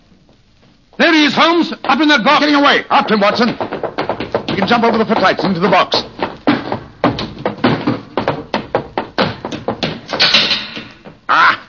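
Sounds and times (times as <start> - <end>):
speech: 1.0 - 3.7, 4.6 - 6.0
theater exit door clattering open and shut: 3.0 - 11.2.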